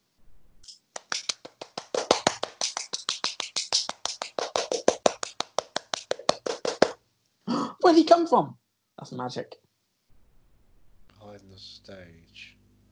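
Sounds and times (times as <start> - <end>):
audience clapping at a stage play: 0.9 - 7.0
speech: 7.9 - 9.6, 11.3 - 12.6.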